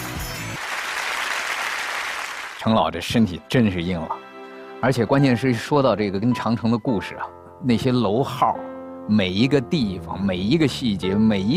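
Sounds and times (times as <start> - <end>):
audience applause thanking an elderly honoree at a Great Wall restoration tribute event: 0.4 - 2.7
speech: 2.6 - 4.2, 4.8 - 11.5
low musical tone: 3.2 - 11.5.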